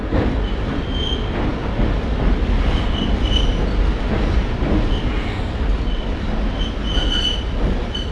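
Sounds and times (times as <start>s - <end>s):
train: 0.0s - 8.1s.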